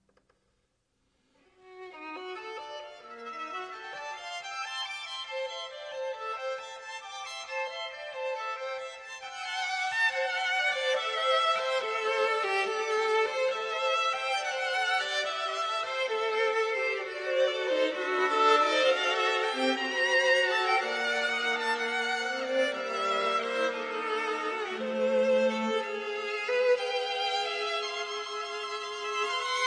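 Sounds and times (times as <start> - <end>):
string quartet: 1.6 - 29.6.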